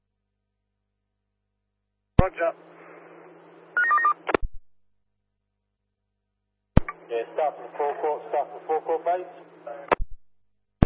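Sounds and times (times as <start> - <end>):
speech: 2.2 - 2.7, 7.2 - 9.9
telephone dialing tones: 3.8 - 4.2.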